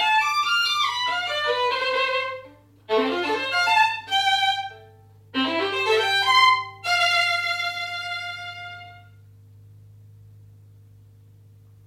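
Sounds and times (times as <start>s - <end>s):
violin: 0.0s - 9.2s.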